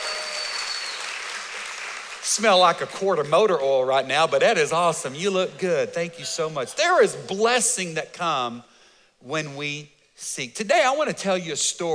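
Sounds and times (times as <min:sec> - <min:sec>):
church audience applause: 0:00.0 - 0:02.8
speech: 0:02.3 - 0:11.9.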